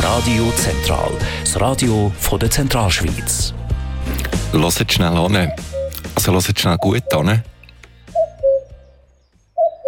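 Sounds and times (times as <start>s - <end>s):
speech: 0.2s - 3.6s, 4.5s - 7.5s
birds singing and calling: 5.1s - 9.8s.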